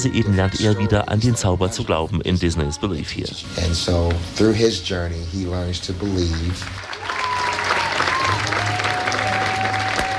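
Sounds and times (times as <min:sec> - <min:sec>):
speech: 0:00.0 - 0:07.2
theater audience applauding: 0:06.0 - 0:10.1.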